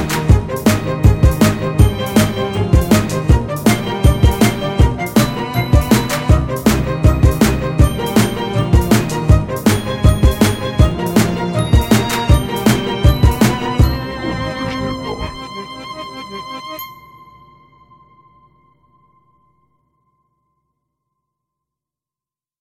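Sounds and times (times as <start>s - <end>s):
violin: 0.0s - 16.9s.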